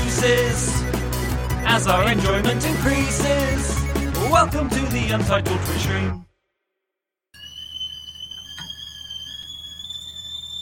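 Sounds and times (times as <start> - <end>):
speech: 0.2 - 0.9, 1.7 - 6.3
kettle whistling: 7.4 - 10.6.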